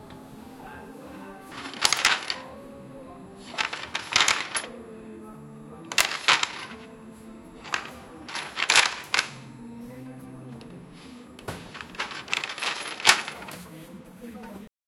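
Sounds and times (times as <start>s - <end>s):
Soviet totalitarian ambience: 0.0s - 13.8s
pages flipping: 1.5s - 2.5s, 3.4s - 4.8s, 5.9s - 6.9s, 7.6s - 9.4s, 10.0s - 14.6s.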